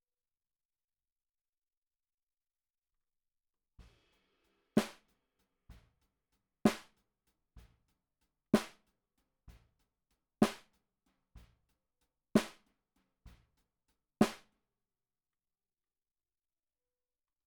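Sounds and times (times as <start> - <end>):
snare drum recorded from the bottom: 3.8 - 6.0, 6.7 - 7.0, 8.6 - 8.9, 10.4 - 10.7, 12.4 - 12.7, 14.2 - 14.5.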